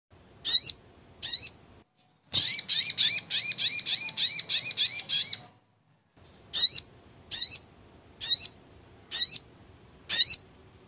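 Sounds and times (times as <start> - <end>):
brown-throated sunbird singing: 0.4 - 1.6, 2.3 - 5.5, 6.5 - 9.5, 10.1 - 10.5.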